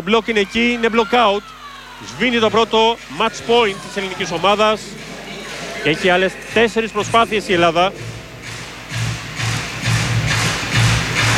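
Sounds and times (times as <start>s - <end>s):
speech: 0.0s - 5.0s, 5.8s - 8.1s
rhythmic applause in a volleyball arena: 0.0s - 11.3s.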